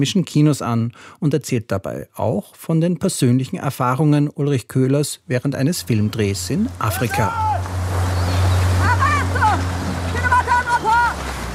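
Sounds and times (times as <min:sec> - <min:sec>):
speech: 0:00.0 - 0:07.8
several voices calling out: 0:05.7 - 0:11.5
motorboat engine drone approaching a beach: 0:05.8 - 0:11.5
rushing surf: 0:05.8 - 0:11.5.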